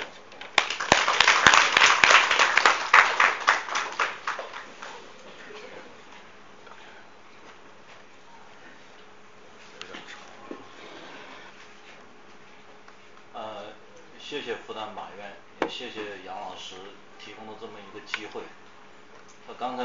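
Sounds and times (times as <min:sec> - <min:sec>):
warm audience applause: 0:00.5 - 0:05.1
speech: 0:14.8 - 0:18.6, 0:19.5 - 0:19.8.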